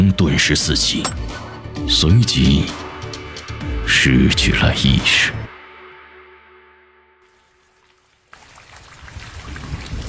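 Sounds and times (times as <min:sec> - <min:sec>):
speech: 0:00.0 - 0:02.8, 0:03.9 - 0:05.4
rain falling growing into mountain downpour: 0:07.3 - 0:10.0.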